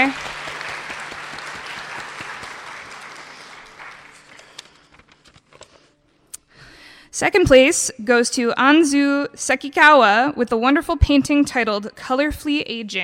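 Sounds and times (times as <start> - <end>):
audience applause: 0.0 - 5.2
speech: 7.2 - 13.0.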